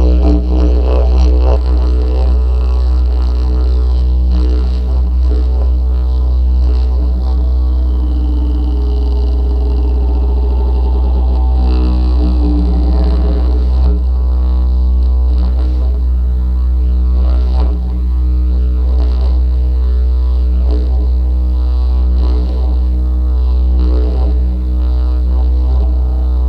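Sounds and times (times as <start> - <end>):
didgeridoo in Sicily: 0.0 - 26.4.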